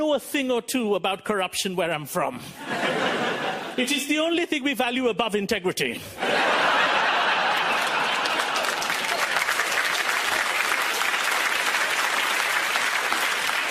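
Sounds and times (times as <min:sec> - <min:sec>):
speech: 0:00.1 - 0:06.9
laughter: 0:02.6 - 0:03.8, 0:06.1 - 0:09.7
audience clapping: 0:07.0 - 0:13.7.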